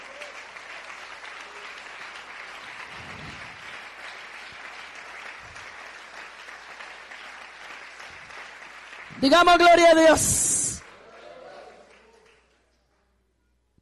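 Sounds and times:
audience applause: 0.0 - 10.2, 10.8 - 12.6
speech: 9.2 - 10.4.

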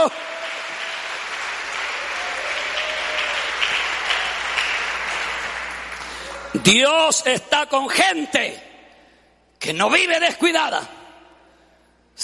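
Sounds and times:
speech: 0.0 - 0.3, 6.6 - 8.7, 9.6 - 11.0
audience applause: 0.0 - 6.6.

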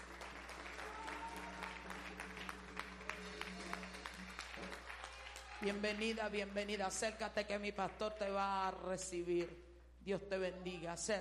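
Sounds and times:
audience applauding: 0.0 - 6.7
speech: 5.6 - 11.2.

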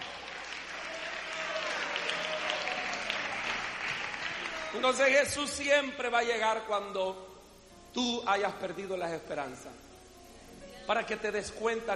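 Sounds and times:
audience applause: 0.0 - 5.2
speech: 4.7 - 7.3, 7.9 - 9.9, 10.9 - 11.9.

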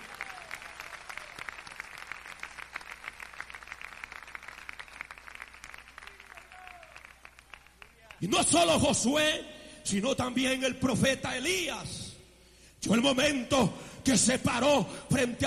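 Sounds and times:
audience applause: 0.0 - 8.2
speech: 8.2 - 12.0, 12.8 - 15.4.

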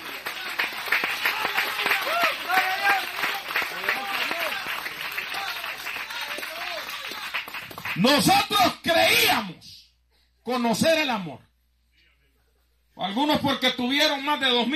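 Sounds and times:
hand clapping: 0.0 - 8.0
speech: 8.0 - 9.6, 10.4 - 11.5, 13.0 - 14.7.

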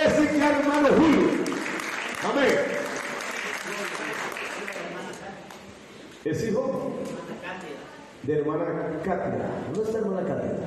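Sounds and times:
applause: 0.0 - 5.7
speech: 7.6 - 10.6.

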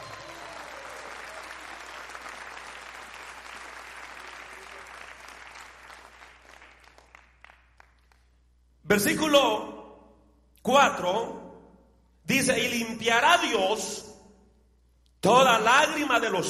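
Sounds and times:
audience applause: 0.0 - 8.3
speech: 8.9 - 9.7, 10.6 - 11.4, 12.3 - 14.1, 15.2 - 16.4.

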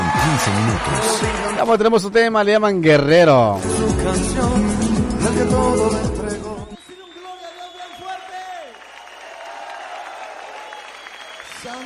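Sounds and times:
audience shouting and cheering for joy: 0.0 - 1.8, 6.7 - 11.8
speech: 0.5 - 5.9.

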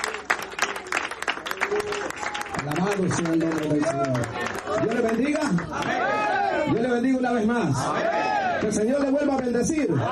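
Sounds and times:
church congregation clapping hands in praise: 0.0 - 6.9, 8.5 - 9.8
speech: 2.6 - 10.0.

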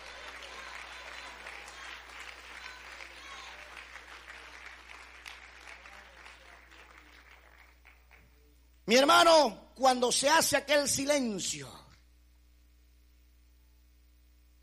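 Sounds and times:
audience applause: 0.0 - 8.4
speech: 8.9 - 11.8.

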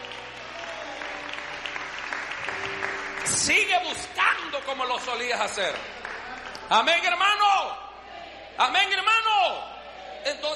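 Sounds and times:
audience applause: 0.0 - 6.8
speech: 3.3 - 6.1, 6.7 - 7.8, 8.6 - 10.5.

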